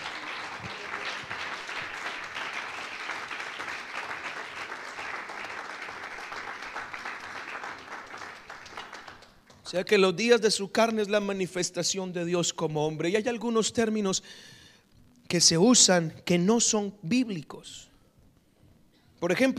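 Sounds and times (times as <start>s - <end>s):
audience applauding: 0.0s - 9.7s
speech: 9.7s - 14.6s, 15.3s - 17.9s, 19.2s - 19.5s.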